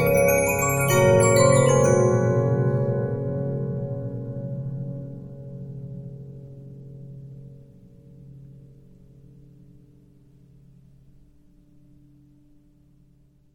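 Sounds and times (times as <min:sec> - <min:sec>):
Regina 15-inch disc music box: 0:00.0 - 0:03.4.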